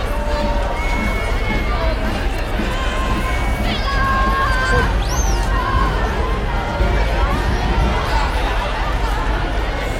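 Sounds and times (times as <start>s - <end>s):
music: 0.0s - 9.9s
russ parade crowd voices and shouts on Karl Johan: 0.0s - 9.9s
whistles and tooting tones: 0.5s - 1.9s, 4.9s - 5.6s.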